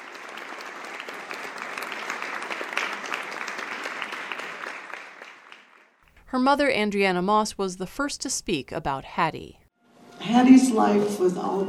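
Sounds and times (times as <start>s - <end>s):
audience standing ovation applause: 0.0s - 6.0s
speech: 6.3s - 9.6s, 10.2s - 11.6s.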